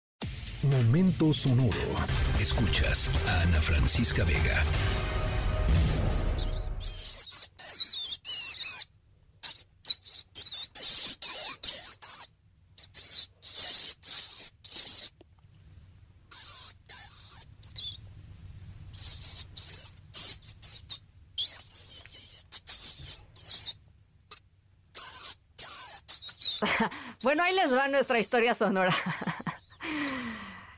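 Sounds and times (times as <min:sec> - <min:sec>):
low hum: 0:00.3 - 0:07.2
speech: 0:00.6 - 0:06.5, 0:27.6 - 0:29.2
mice squeaking: 0:06.3 - 0:15.2, 0:16.3 - 0:18.1, 0:18.9 - 0:30.4
laughter: 0:28.9 - 0:29.6.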